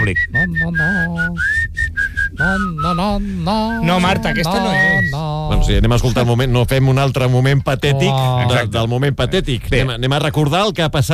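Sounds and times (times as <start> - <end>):
person whistling a tune: 0.0 - 5.3
steady low hum: 0.0 - 10.2
speech: 0.1 - 1.6, 2.3 - 11.1.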